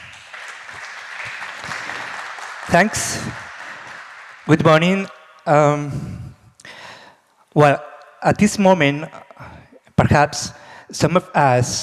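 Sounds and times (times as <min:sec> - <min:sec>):
audience applause welcoming a speaker to a talk: 0:00.0 - 0:05.0
speech: 0:02.7 - 0:03.4, 0:04.5 - 0:06.2, 0:07.6 - 0:11.8.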